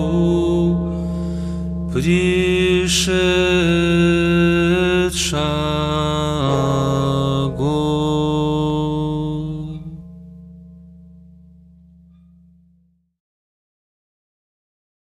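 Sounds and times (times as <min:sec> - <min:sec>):
irmos liturgical chant: 0:00.0 - 0:10.0
blagovest church bell ringing: 0:00.0 - 0:12.7.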